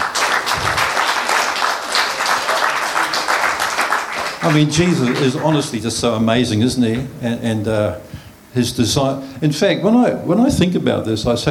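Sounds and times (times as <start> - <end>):
church congregation applause: 0.0 - 5.9
speech: 4.4 - 11.4.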